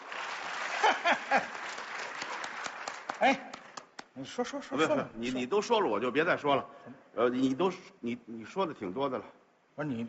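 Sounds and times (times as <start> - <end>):
audience applause: 0.0 - 4.0
speech: 0.9 - 1.6, 3.2 - 3.5, 4.2 - 10.0.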